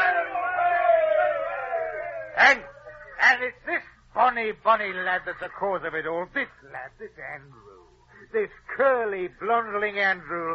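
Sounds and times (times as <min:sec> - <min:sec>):
group of men cheering: 0:00.0 - 0:03.2
speech: 0:02.4 - 0:10.5.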